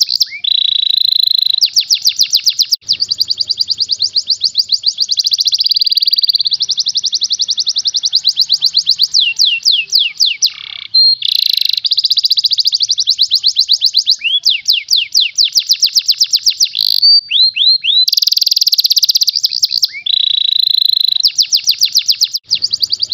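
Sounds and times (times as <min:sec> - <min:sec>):
contest champion canary singing fast trills: 0:00.0 - 0:23.1.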